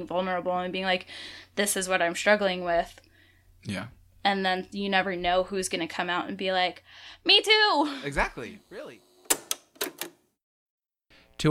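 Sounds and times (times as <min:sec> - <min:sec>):
speech: 0:00.0 - 0:09.1
cassette tape mechanism clacking, podcast logo effect: 0:09.2 - 0:10.2.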